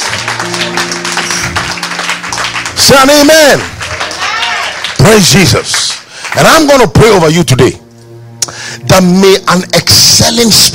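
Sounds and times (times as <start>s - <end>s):
audience clapping: 0.0s - 7.2s
speech: 3.0s - 3.7s, 5.0s - 7.8s, 8.5s - 10.7s.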